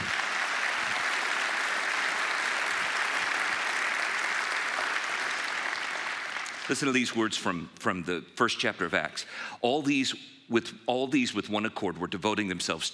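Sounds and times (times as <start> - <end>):
audience applause: 0.0 - 6.9
speech: 6.7 - 12.9.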